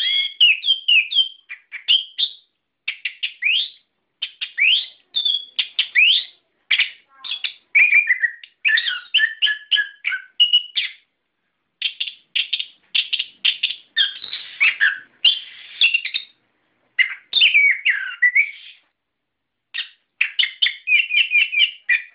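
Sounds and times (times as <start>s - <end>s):
songbird song: 0.0s - 22.1s.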